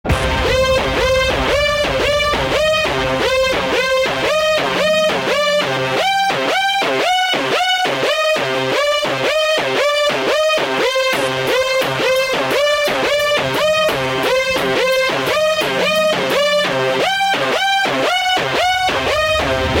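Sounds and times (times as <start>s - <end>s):
winning music: 0.1s - 19.7s.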